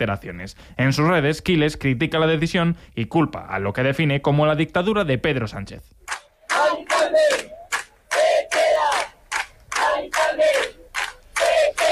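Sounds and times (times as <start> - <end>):
speech: 0.0 - 6.0
crowd of neighbours chanting protest slogans: 6.1 - 11.8.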